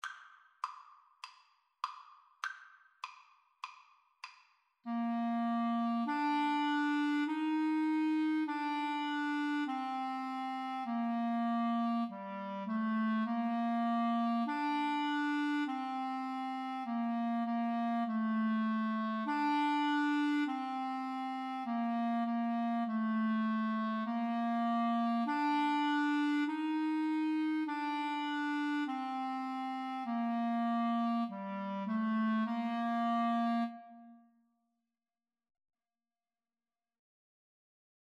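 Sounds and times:
clarinet duet: 4.9s - 34.3s.

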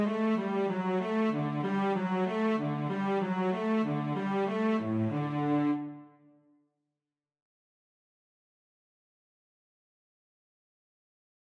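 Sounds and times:
violin and cello duet: 0.0s - 6.0s.

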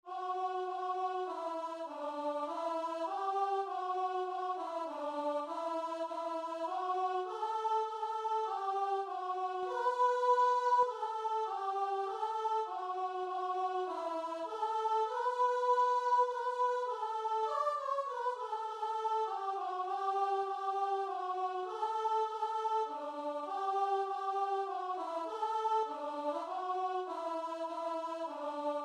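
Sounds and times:
keyboard: 0.1s - 28.8s.

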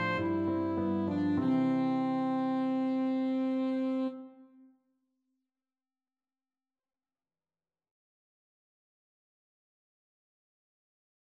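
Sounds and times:
alto saxophone: 0.0s - 4.7s.

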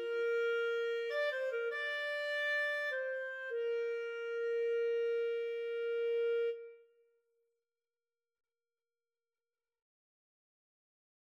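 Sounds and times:
clarinet and saxophone duet: 0.0s - 6.8s.

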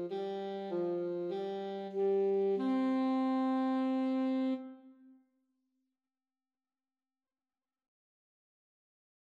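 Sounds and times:
alto saxophone duet: 0.0s - 5.2s.

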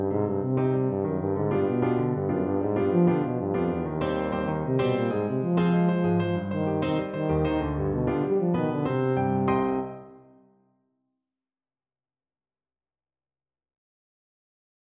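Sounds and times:
tuba melody: 0.0s - 10.4s.

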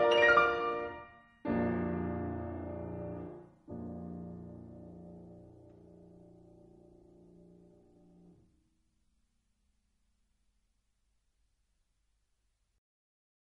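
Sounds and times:
piano toccata: 0.0s - 8.5s.

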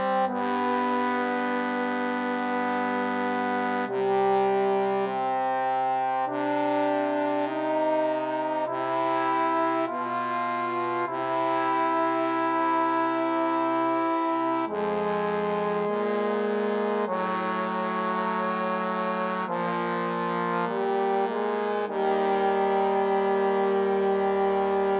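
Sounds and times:
trombone trio playing an aequale: 0.2s - 24.9s.

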